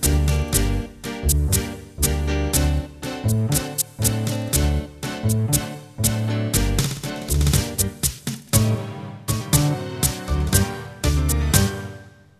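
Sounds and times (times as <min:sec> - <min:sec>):
ballroom tango music: 0:00.0 - 0:12.3.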